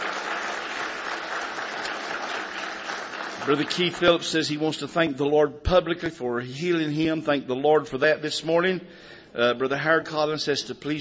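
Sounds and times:
congregation clapping to welcome a new family at a morning church service: 0.0 - 4.9
speech: 3.4 - 10.9.

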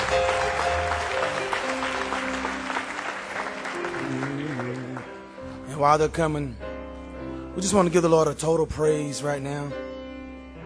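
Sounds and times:
audience clapping: 0.0 - 5.4
speech: 5.8 - 6.6, 7.6 - 9.8.

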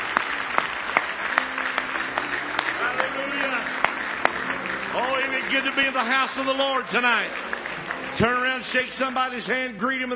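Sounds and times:
crowd voices: 0.0 - 9.2
audience applauding: 0.0 - 10.1
speech: 5.5 - 7.5, 8.2 - 10.1.

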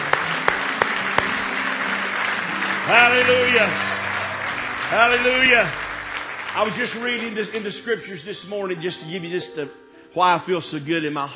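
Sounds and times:
audience hand clapping: 0.0 - 8.6
speech: 2.9 - 3.9, 4.9 - 5.9, 6.6 - 11.3.

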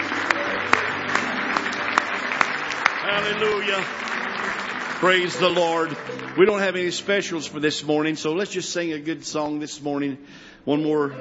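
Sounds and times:
audience clapping hands in praise: 0.0 - 8.5
speech: 3.1 - 11.1.

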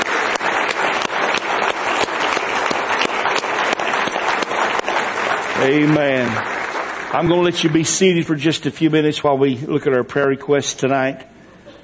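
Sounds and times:
audience hand clapping in praise: 0.0 - 9.0
speech: 5.6 - 6.5, 7.1 - 11.3.

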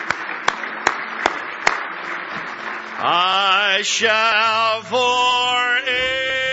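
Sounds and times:
audience clapping hands in praise: 0.0 - 5.1
speech: 3.0 - 6.4.

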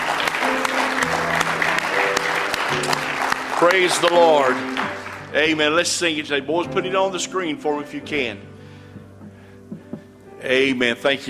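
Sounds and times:
audience hand clapping: 0.0 - 5.8
speech: 3.6 - 8.5, 10.4 - 11.2.

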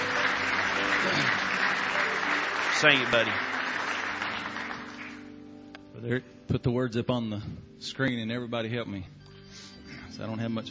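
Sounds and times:
congregation hand clap of praise during a morning church service: 0.0 - 5.4
speech: 2.8 - 3.5, 6.0 - 9.2, 10.2 - 10.6.

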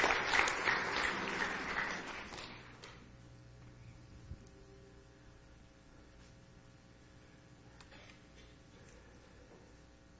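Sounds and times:
audience applause for singers: 0.0 - 2.9.

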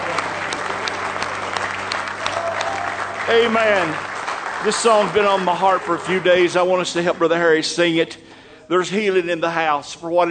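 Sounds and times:
audience applauding: 0.0 - 7.0
speech: 3.3 - 10.3.

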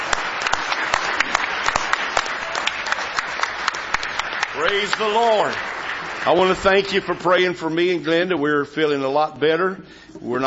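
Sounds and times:
audience clapping hands: 0.0 - 8.0
speech: 4.6 - 10.4.

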